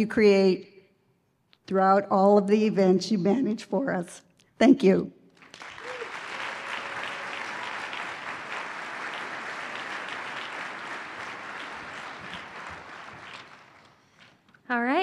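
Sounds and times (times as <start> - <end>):
speech: 0.0 - 0.7, 1.7 - 5.2
audience applause: 5.4 - 14.4.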